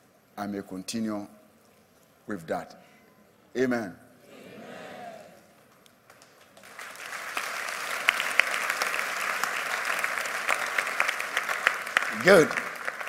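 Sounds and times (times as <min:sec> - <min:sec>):
speech: 0:00.4 - 0:01.4, 0:02.3 - 0:02.9, 0:03.6 - 0:04.0, 0:12.2 - 0:12.6
audience clapping hands: 0:06.0 - 0:13.0.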